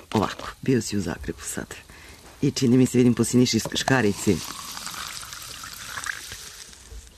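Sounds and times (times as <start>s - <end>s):
speech: 0.2s - 4.6s
sparkling mineral water pouring: 2.6s - 7.1s.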